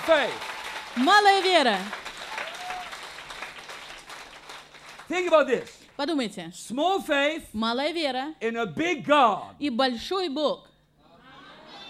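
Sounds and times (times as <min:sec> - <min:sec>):
church congregation applauding: 0:00.0 - 0:05.8
speech: 0:00.1 - 0:02.0, 0:05.1 - 0:10.7.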